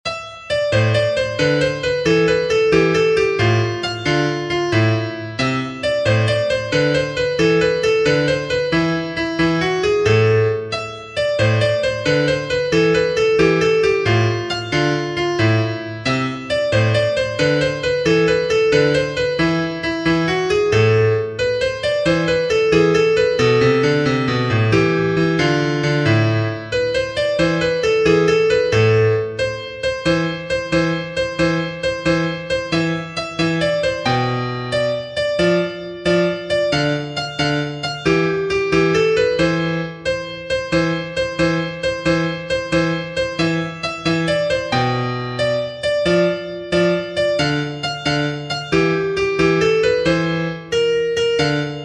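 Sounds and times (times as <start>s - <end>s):
tarantella on pianoforte: 0.0s - 51.8s.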